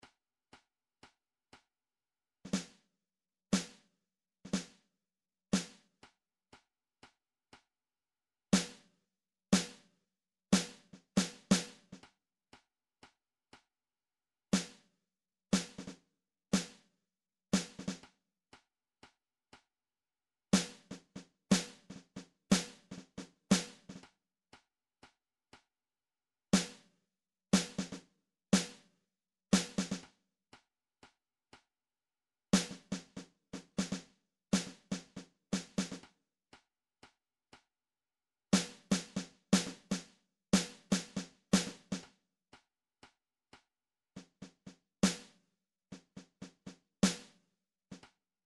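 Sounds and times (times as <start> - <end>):
snare drum: 2.5 - 2.8, 3.6 - 3.8, 4.5 - 4.8, 5.6 - 5.9, 8.6 - 8.9, 9.6 - 9.9, 10.6 - 12.0, 14.6 - 14.9, 15.6 - 16.0, 16.6 - 16.9, 17.6 - 18.1, 20.6 - 24.0, 26.6 - 26.9, 27.6 - 28.9, 29.5 - 30.1, 32.6 - 36.0, 38.6 - 42.1, 44.2 - 48.0.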